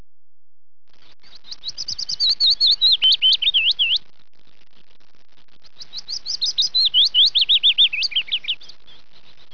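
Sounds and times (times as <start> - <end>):
bird: 1.0 - 4.1, 5.6 - 9.5.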